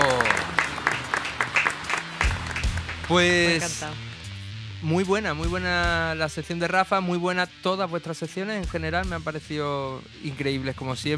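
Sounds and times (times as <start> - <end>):
small group applauding: 0.0 - 4.2
speech: 3.1 - 4.1, 4.8 - 11.1.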